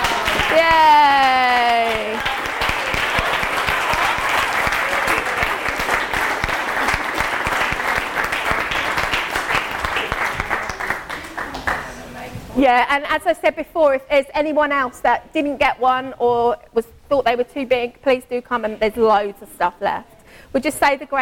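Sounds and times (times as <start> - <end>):
audience clapping for children: 0.0 - 12.0
speech: 12.7 - 21.2.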